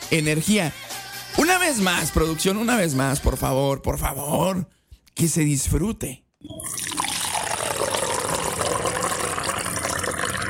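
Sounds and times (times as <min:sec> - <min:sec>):
speech: 0:00.1 - 0:06.8
coffee pouring: 0:06.5 - 0:10.4.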